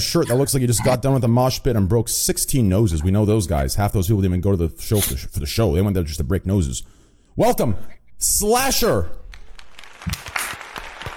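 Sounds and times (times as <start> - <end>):
speech: 0.0 - 9.2
applause: 9.3 - 11.1.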